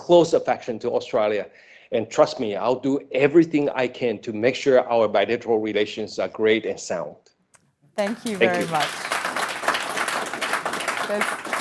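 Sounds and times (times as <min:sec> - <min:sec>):
speech: 0:00.1 - 0:07.3, 0:08.0 - 0:09.1, 0:11.1 - 0:11.4
audience applause: 0:08.0 - 0:11.5.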